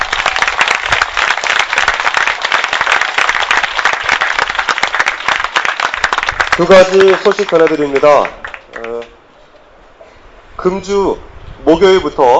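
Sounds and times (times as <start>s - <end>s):
audience applause: 0.0s - 9.2s
speech: 6.6s - 9.1s, 10.6s - 12.3s.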